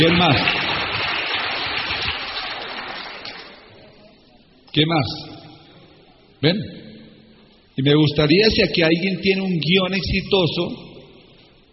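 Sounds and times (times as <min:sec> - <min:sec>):
speech: 0:00.0 - 0:00.7, 0:04.7 - 0:05.3, 0:06.4 - 0:06.8, 0:07.8 - 0:10.8
audience applause: 0:00.0 - 0:03.6.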